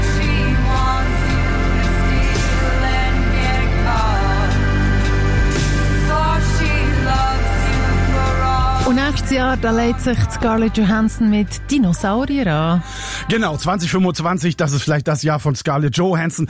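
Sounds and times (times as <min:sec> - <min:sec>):
pop song with sung vocal, bass and light percussion: 0:00.0 - 0:14.8
speech: 0:09.4 - 0:16.4.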